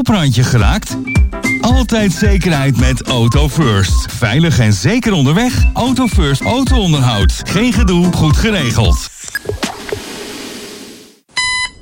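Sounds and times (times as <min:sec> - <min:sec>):
speech: 0:00.0 - 0:09.1
electronic alarm clock ringing: 0:11.4 - 0:11.8.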